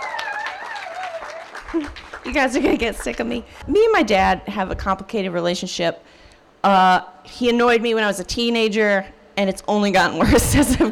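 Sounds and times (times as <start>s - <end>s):
audience applause: 0.0s - 3.4s
speech: 1.7s - 10.9s.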